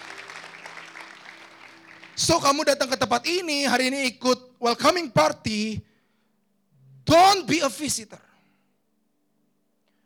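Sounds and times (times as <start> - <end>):
audience applause: 0.0 - 3.0
speech: 2.2 - 5.9, 7.1 - 8.3.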